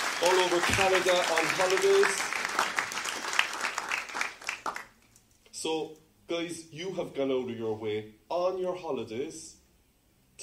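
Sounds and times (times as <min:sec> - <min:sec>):
church congregation applauding holiday visitors from Canada: 0:00.0 - 0:05.0
speech: 0:00.2 - 0:02.8, 0:05.6 - 0:09.6.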